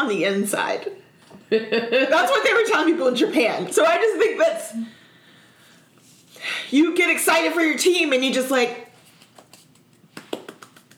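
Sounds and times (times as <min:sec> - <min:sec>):
speech: 0:00.0 - 0:05.0, 0:06.4 - 0:08.8
quiet golf clap: 0:10.1 - 0:10.9.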